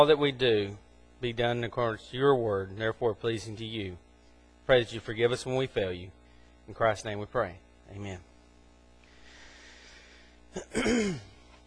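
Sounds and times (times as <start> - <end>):
speech: 0.0 - 4.0, 4.7 - 8.3, 10.6 - 11.3
person clearing something stuck in the throat: 10.5 - 11.6.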